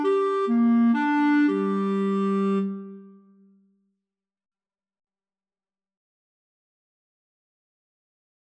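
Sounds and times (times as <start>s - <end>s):
symphony clarinet part for karaoke: 0.0s - 3.4s.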